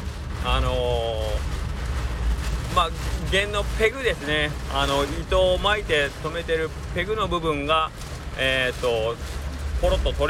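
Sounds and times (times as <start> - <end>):
heavy rain storm: 0.0 - 10.2
speech: 0.4 - 1.2, 2.8 - 10.2.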